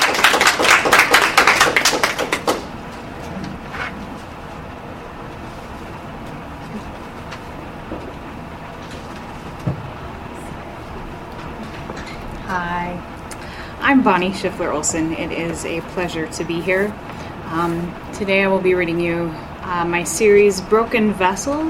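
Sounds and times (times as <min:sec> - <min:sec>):
audience clapping: 0:00.0 - 0:02.8
speech: 0:14.0 - 0:21.6.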